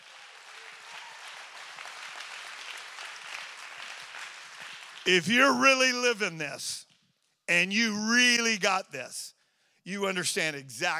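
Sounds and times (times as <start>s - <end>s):
audience clapping hands: 0.0s - 6.2s
speech: 5.0s - 6.9s, 7.5s - 10.9s.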